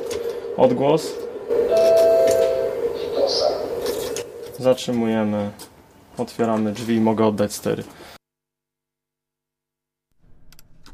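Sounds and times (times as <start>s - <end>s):
rumbling background: 0.0s - 7.6s
speech: 0.6s - 1.3s, 4.6s - 5.6s, 6.2s - 8.0s
tram bell ringing: 1.5s - 4.3s.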